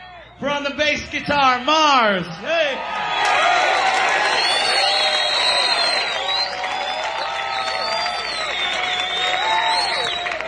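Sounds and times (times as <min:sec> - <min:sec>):
speech: 0:00.4 - 0:03.5
audience applause: 0:03.0 - 0:10.4.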